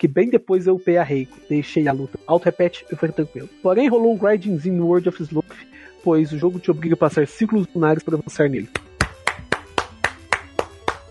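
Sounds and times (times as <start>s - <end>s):
speech: 0.0s - 8.8s
hand clapping: 8.7s - 11.0s.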